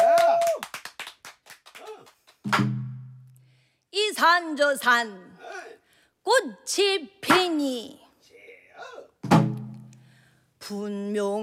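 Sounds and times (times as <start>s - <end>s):
scattered hand claps: 0.0s - 2.9s
speech: 2.5s - 2.8s, 4.2s - 5.3s, 6.3s - 8.0s, 10.7s - 11.4s.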